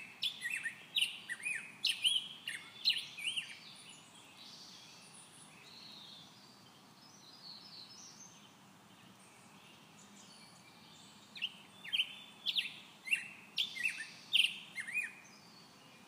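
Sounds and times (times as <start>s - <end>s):
black-headed grosbeak singing: 0.0s - 16.0s
soft background hiss: 0.0s - 16.0s.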